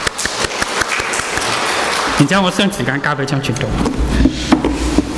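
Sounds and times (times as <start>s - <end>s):
audience applause welcoming a speaker: 0.0s - 2.6s
speech: 2.2s - 5.0s.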